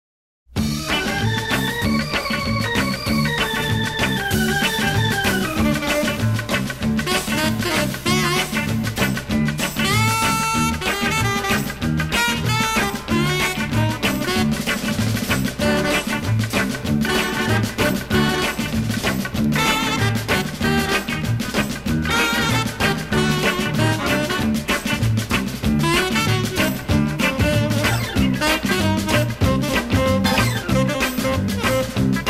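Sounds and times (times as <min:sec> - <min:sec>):
orchestra playing a folk tune: 0:00.7 - 0:08.8, 0:09.8 - 0:32.2.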